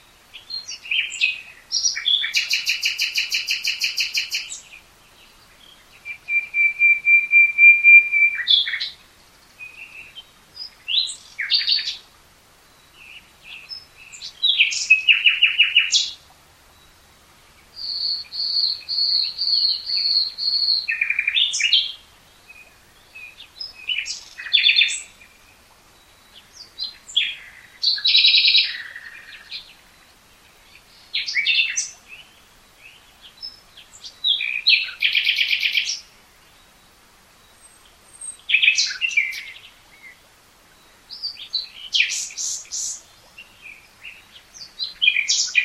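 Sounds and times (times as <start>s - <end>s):
common nightingale singing: 0.0s - 12.0s, 12.6s - 17.0s, 17.6s - 45.6s.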